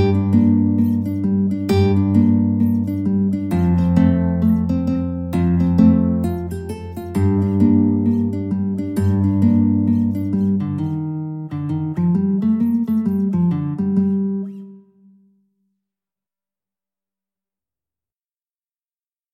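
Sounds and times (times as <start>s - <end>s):
guitar: 0.0s - 15.4s.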